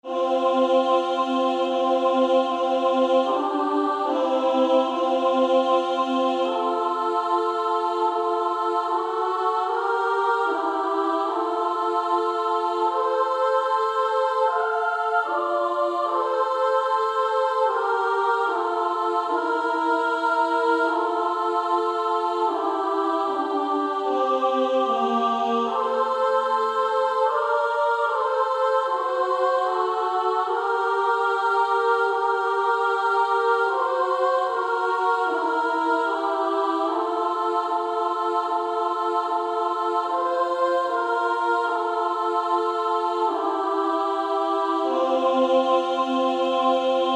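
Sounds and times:
female choir singing: 0.0s - 47.1s.

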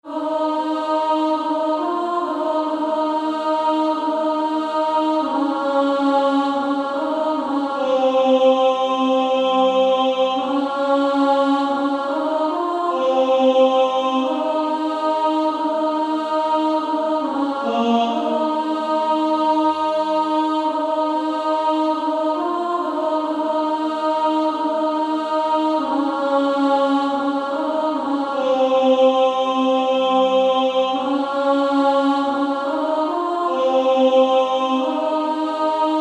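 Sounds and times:
female choir singing A1: 0.0s - 35.9s.

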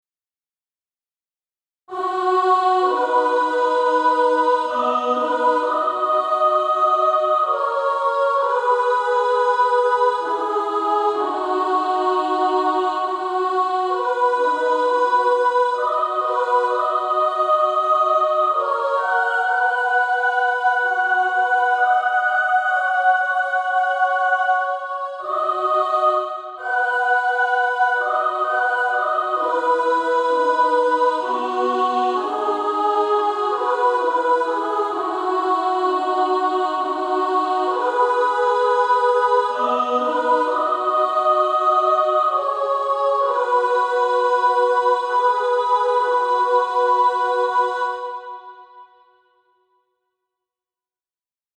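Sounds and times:
female choir singing soprano and alto: 1.9s - 49.0s.

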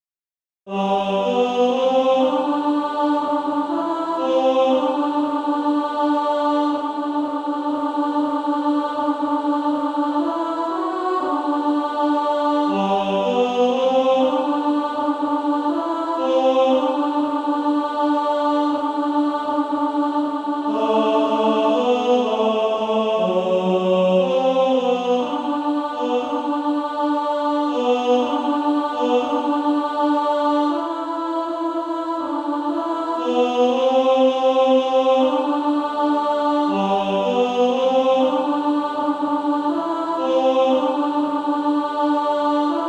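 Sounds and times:
female choir singing: 0.7s - 42.8s.

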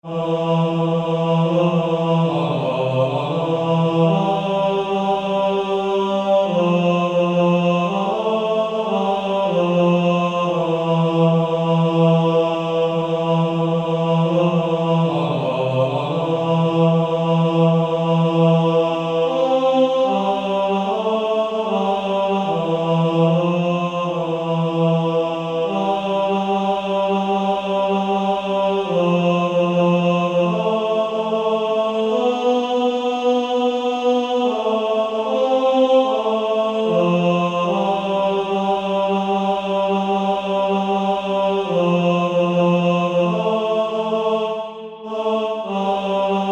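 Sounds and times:
male choir singing bass: 0.0s - 46.5s.

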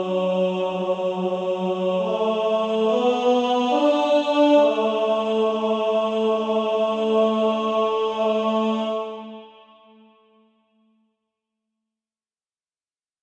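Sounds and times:
male choir singing: 0.0s - 10.0s.

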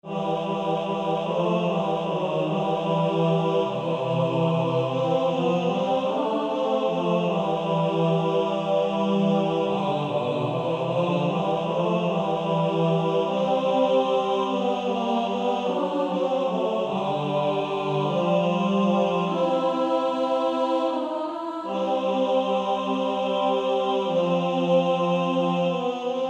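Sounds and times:
male choir singing: 0.0s - 26.2s.

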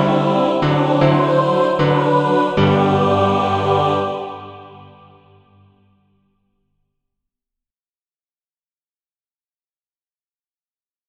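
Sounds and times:
mixed practice music: 0.0s - 5.8s.

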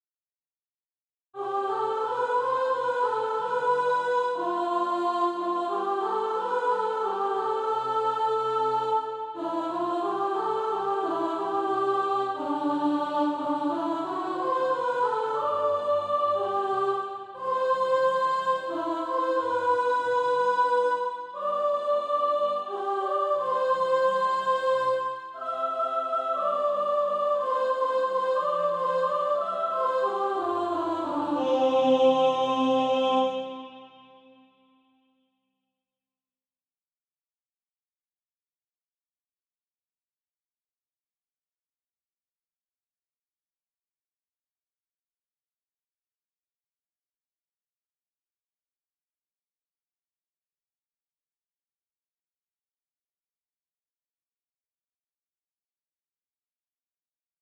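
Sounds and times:
soprano singing practice music: 1.4s - 34.2s.

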